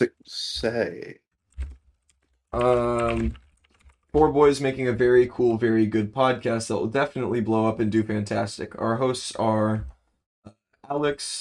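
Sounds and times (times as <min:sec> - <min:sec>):
speech: 0:00.0 - 0:01.2, 0:02.5 - 0:03.4, 0:04.1 - 0:11.4
computer keyboard typing a Patreon description: 0:01.4 - 0:04.3.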